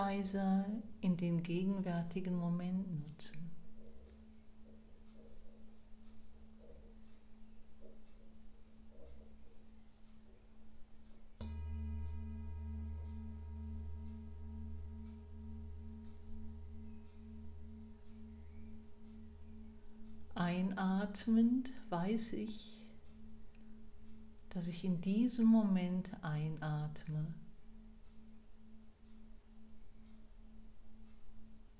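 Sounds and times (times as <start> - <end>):
speech: 0.0 - 3.6, 20.8 - 22.7, 24.5 - 27.4
meditation gong struck once: 11.4 - 21.8.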